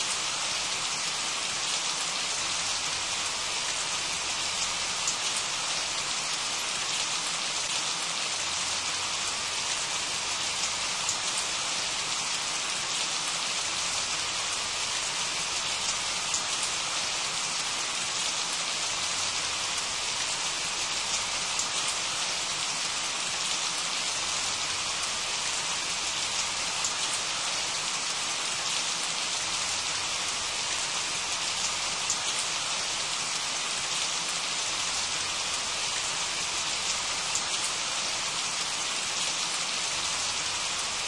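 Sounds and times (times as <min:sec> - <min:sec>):
refreshing rain: 0:00.0 - 0:41.0.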